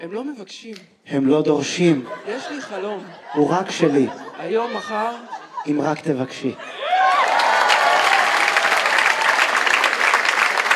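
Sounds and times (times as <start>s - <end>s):
speech: 0.0s - 6.8s
laughter: 1.8s - 7.9s
audience applause: 6.8s - 10.7s.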